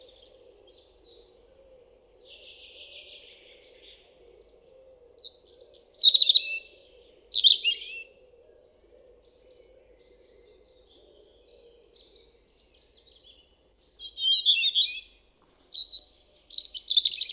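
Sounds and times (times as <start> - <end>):
European robin Erithacus rubecula singing: 5.2 - 8.1, 11.5 - 17.3.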